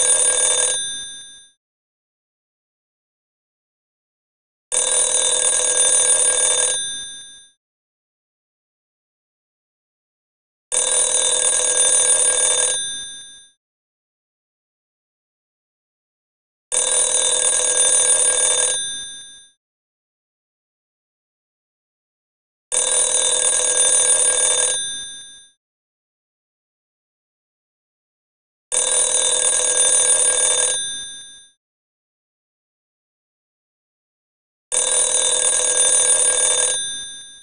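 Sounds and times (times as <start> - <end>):
telephone ringing: 0.0 - 1.5, 4.7 - 7.5, 10.7 - 13.5, 16.7 - 19.5, 22.7 - 25.5, 28.7 - 31.5, 34.7 - 37.4.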